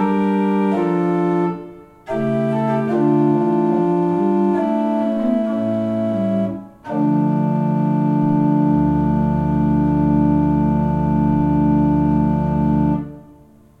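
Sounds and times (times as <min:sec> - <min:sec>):
pipe organ: 0:00.0 - 0:13.4.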